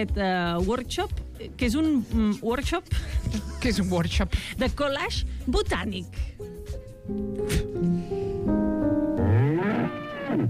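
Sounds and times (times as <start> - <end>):
speech: 0.0 - 6.5, 7.1 - 8.2
mule braying: 9.2 - 10.4.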